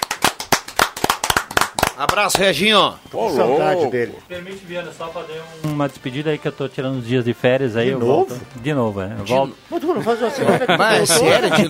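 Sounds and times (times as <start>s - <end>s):
round of applause: 0.0s - 2.4s
speech: 2.0s - 11.6s
laughter: 10.2s - 11.6s.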